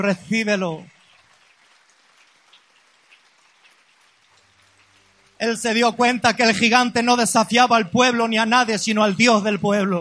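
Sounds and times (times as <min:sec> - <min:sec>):
speech: 0:00.0 - 0:00.9, 0:05.4 - 0:09.9
audience applauding: 0:01.0 - 0:05.4.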